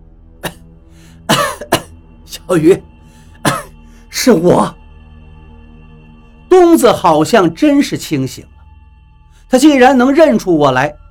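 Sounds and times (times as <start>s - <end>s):
man coughing: 0.4s - 0.6s, 1.3s - 2.0s, 3.4s - 3.8s
speech: 2.4s - 2.9s, 4.2s - 4.8s, 6.7s - 8.5s, 9.5s - 11.0s.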